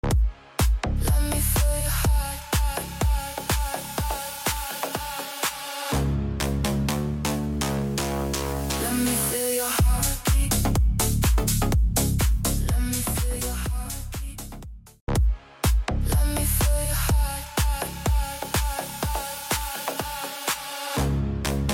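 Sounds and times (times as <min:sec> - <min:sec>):
deep house remix: 0:00.0 - 0:21.7.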